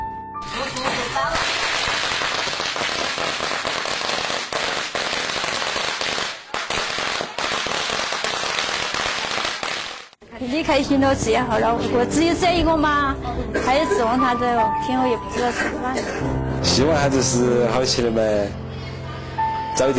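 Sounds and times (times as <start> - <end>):
strings of firecrackers going off: 0.5 - 10.2
speech: 10.4 - 18.6, 19.8 - 19.9.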